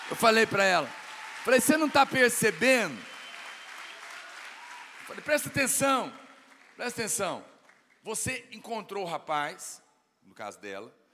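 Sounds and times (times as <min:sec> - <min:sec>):
crowd applause: 0:00.0 - 0:07.9
speech: 0:00.1 - 0:03.1, 0:05.1 - 0:06.2, 0:06.8 - 0:11.0.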